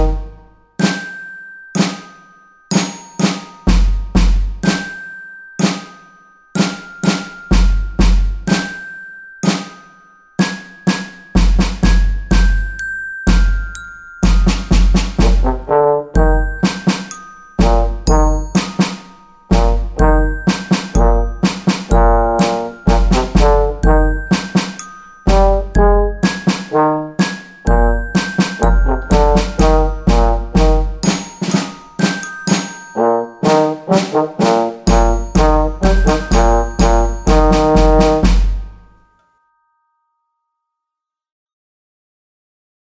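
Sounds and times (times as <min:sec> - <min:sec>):
rock trombone: 0:00.0 - 0:00.4, 0:15.2 - 0:16.5, 0:17.6 - 0:18.5, 0:19.5 - 0:21.3, 0:21.9 - 0:24.3, 0:25.3 - 0:28.0, 0:28.6 - 0:31.3, 0:33.0 - 0:38.5
percussion: 0:00.0 - 0:39.4.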